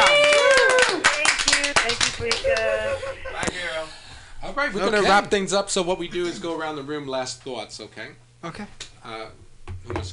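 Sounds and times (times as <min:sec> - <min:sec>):
audience clapping: 0:00.0 - 0:03.1
speech: 0:04.5 - 0:10.1.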